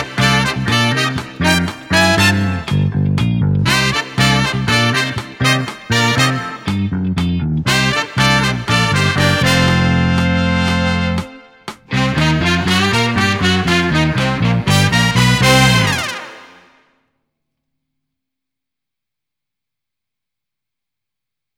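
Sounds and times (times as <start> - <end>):
backing track: 0.0 - 16.4.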